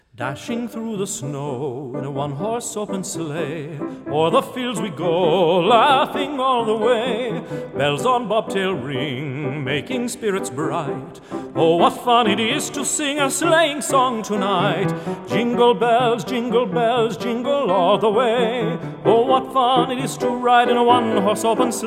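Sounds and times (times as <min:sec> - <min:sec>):
Christmas song: 0:00.0 - 0:21.8.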